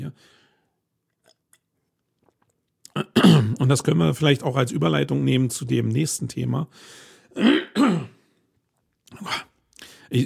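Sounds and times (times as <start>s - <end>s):
speech: 0.1s - 0.4s, 3.3s - 8.1s
throat clearing: 2.9s - 3.6s, 7.4s - 8.2s.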